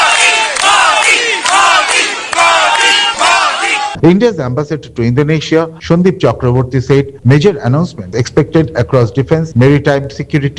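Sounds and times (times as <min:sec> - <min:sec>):
Indian diaspora crowd at a hotel in Jakarta cheering and chanting to welcome Prime Minister Modi: 0:00.0 - 0:04.0
speech: 0:04.0 - 0:10.5.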